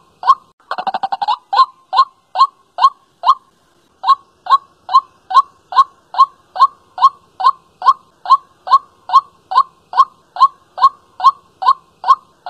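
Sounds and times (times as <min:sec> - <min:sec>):
white-breasted waterhen calling: 0:00.0 - 0:12.4.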